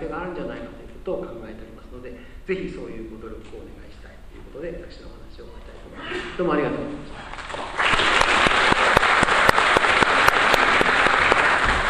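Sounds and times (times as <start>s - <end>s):
speech: 0.0s - 1.7s, 2.5s - 7.2s
audience applause: 7.2s - 11.8s.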